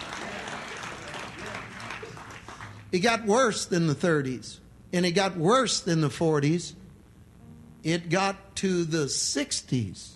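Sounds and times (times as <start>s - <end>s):
congregation clapping during a church sermon: 0.0s - 3.1s
speech: 2.9s - 6.8s, 7.8s - 10.1s.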